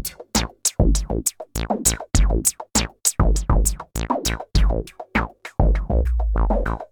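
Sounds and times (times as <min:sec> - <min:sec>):
synthesizer filter input: 0:00.1 - 0:06.7.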